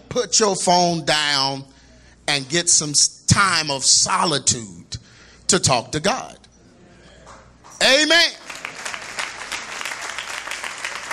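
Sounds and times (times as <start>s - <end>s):
speech: 0.2s - 6.4s, 7.8s - 8.4s
thin audience applause: 8.4s - 11.1s.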